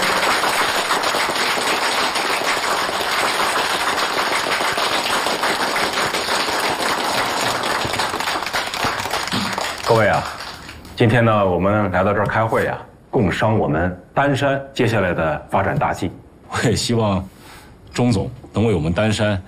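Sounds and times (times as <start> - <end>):
applause: 0.0 - 11.0
speech: 11.0 - 17.3, 18.0 - 19.4.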